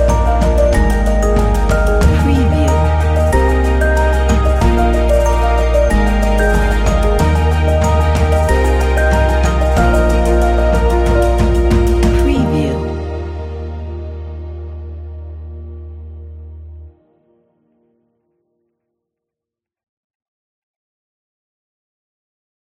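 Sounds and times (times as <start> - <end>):
piano: 0.0 - 18.0.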